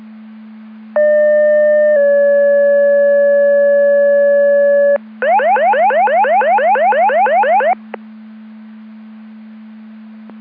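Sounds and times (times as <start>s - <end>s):
siren: 1.0s - 7.8s.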